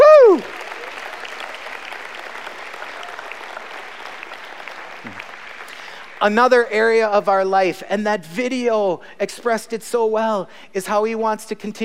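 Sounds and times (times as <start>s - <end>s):
audience applause: 0.0s - 6.2s
speech: 6.2s - 11.8s.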